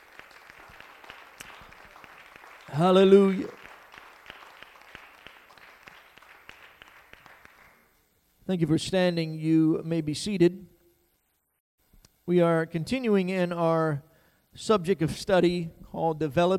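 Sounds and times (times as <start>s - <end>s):
audience applauding: 0.0s - 7.9s
speech: 2.7s - 3.6s, 8.5s - 10.7s, 12.3s - 16.5s.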